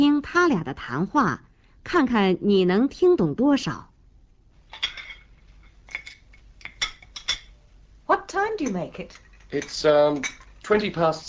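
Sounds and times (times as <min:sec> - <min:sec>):
speech: 0:00.2 - 0:03.9, 0:08.4 - 0:11.2
breakfast cutlery clinking against plates and dishes: 0:04.7 - 0:07.5, 0:08.6 - 0:10.8.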